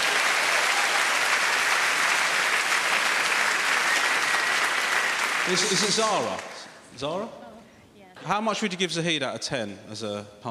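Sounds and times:
audience round of applause: 0:00.0 - 0:06.7
speech: 0:05.5 - 0:07.4, 0:08.2 - 0:10.4.

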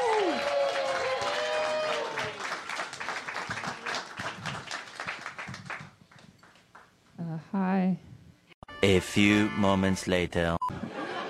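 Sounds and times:
audience applause: 0:00.0 - 0:06.6
speech: 0:08.8 - 0:10.8
laughter: 0:10.7 - 0:11.2.

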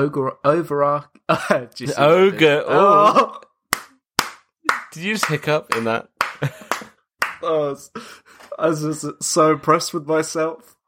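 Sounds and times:
speech: 0:00.0 - 0:03.4, 0:05.0 - 0:10.8
laughter: 0:01.3 - 0:03.4, 0:05.4 - 0:07.0
hand clapping: 0:03.7 - 0:07.5.

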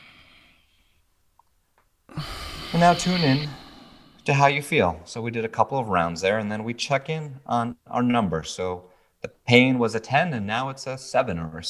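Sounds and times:
gentle breath in during a tapping exercise: 0:00.0 - 0:01.0, 0:02.1 - 0:04.3
speech: 0:02.2 - 0:03.6, 0:04.2 - 0:11.6.

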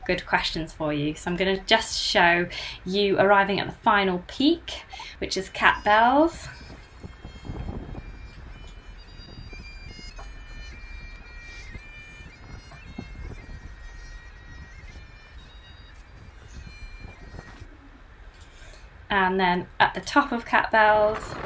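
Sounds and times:
wind outdoors: 0:00.0 - 0:21.4
speech: 0:00.1 - 0:06.6, 0:19.1 - 0:21.4
bagpipes playing outdoors in wind: 0:05.0 - 0:18.9.

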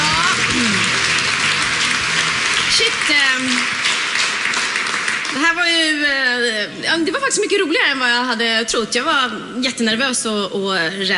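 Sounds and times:
audience applause: 0:00.0 - 0:06.1
speech: 0:02.8 - 0:03.8, 0:05.3 - 0:11.1.

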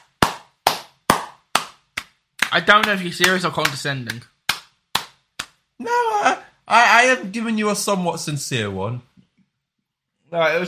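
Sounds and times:
slow hand clapping: 0:00.0 - 0:05.6
speech: 0:02.5 - 0:04.3, 0:05.8 - 0:09.1, 0:10.3 - 0:10.6.

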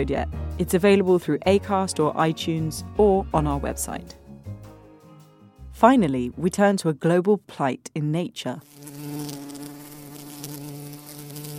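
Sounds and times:
speech: 0:00.0 - 0:04.2, 0:05.8 - 0:08.8
bees buzzing: 0:08.6 - 0:11.5.

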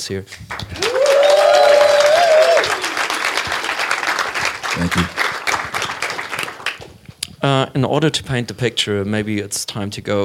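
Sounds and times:
speech: 0:00.0 - 0:00.8, 0:04.8 - 0:05.2, 0:07.4 - 0:10.2
audience clapping for a guest speaker at a lecture in Tokyo: 0:00.3 - 0:07.0.

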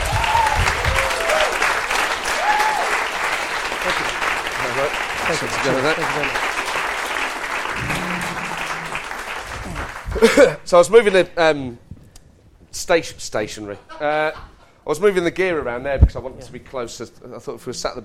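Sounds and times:
audience applause at a live talk event welcoming a guest: 0:00.0 - 0:10.5
speech: 0:04.9 - 0:06.6, 0:10.2 - 0:11.8, 0:12.7 - 0:18.0.

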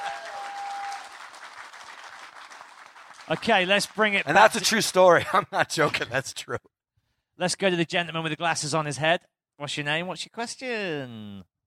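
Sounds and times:
round of applause: 0:00.0 - 0:04.8
speech: 0:03.3 - 0:06.7, 0:07.4 - 0:11.5.

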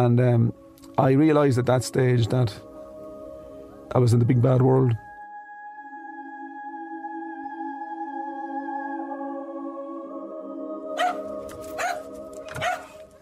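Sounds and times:
speech: 0:00.0 - 0:02.7, 0:03.9 - 0:05.0
dog barking at the bedroom door: 0:11.0 - 0:13.0.

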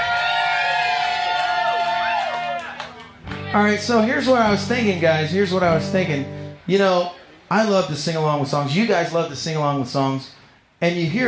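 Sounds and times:
live crowd cheering: 0:00.0 - 0:05.0
speech: 0:03.6 - 0:11.2.

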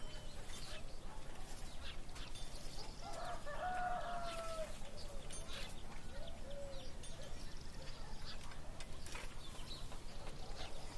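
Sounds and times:
birds singing: 0:00.0 - 0:10.9
farm animals: 0:00.0 - 0:10.9
people in the town doing their work: 0:00.0 - 0:10.9.

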